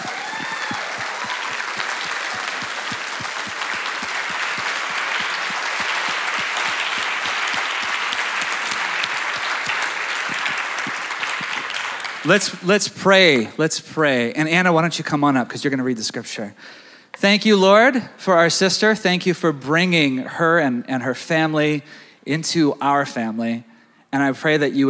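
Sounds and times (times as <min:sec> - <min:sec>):
church congregation clapping to welcome a speaker: 0:00.0 - 0:13.5
speech: 0:12.3 - 0:24.8.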